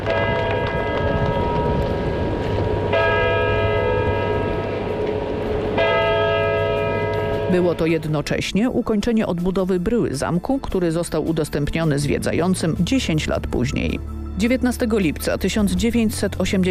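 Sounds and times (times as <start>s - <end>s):
castle clock bells chiming: 0.1s - 8.1s
speech: 7.5s - 16.7s.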